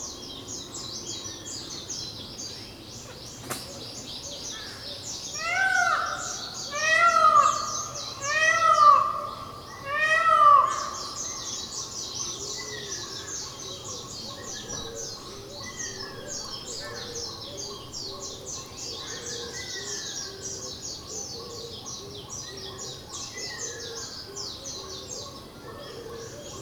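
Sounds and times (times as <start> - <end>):
Indian peafowl calling on Miyakojima: 5.4 - 11.2.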